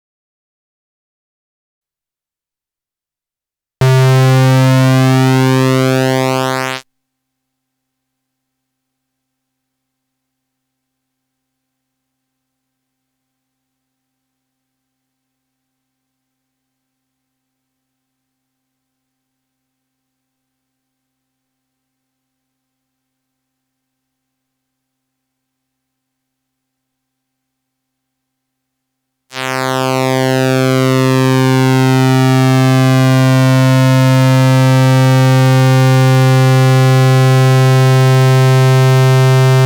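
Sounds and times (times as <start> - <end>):
pulse width modulation waveforms on a Toraiz synthesizer: 3.8 - 6.8, 29.4 - 39.6.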